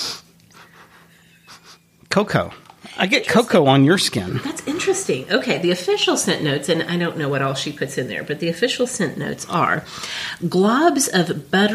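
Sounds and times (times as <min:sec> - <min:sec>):
person sniffing a scent on their skin: 0:00.0 - 0:01.9
speech: 0:02.1 - 0:11.7.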